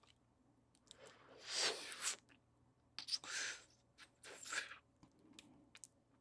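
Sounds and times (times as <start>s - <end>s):
sucking: 0.9s - 2.3s, 3.0s - 4.8s.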